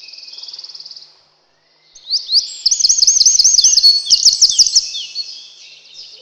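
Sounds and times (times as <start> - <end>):
Eurasian wren shrill trilling song: 2.0 - 5.5.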